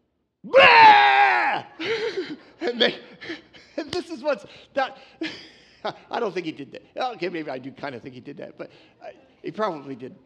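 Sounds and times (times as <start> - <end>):
person imitating God yelling over the Egyptians: 0.5 - 1.8
laughter: 1.7 - 4.2, 5.2 - 6.3
speech: 4.2 - 10.2.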